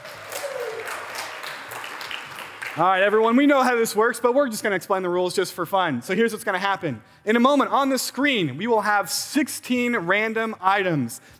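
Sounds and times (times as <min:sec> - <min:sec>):
faint whoop: 0:00.0 - 0:01.2
audience applause: 0:00.0 - 0:02.9
speech: 0:02.8 - 0:11.3.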